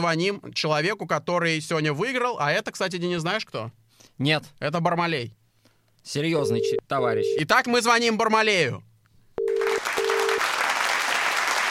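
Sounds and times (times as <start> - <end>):
speech: 0.0 - 5.4, 6.0 - 8.9
applause sound effect: 9.5 - 11.6.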